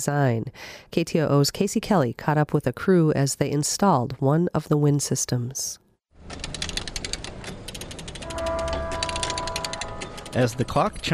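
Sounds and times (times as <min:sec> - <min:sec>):
speech: 0:00.0 - 0:06.6, 0:10.3 - 0:11.1
ratchet jack worked at the end of an old pier: 0:06.3 - 0:10.5.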